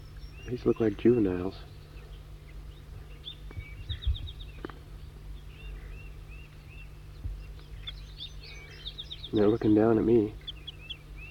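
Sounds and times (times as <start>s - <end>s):
steady low hum: 0.0s - 11.3s
wild birds chittering: 0.0s - 11.3s
speech: 0.5s - 1.8s, 9.3s - 10.4s.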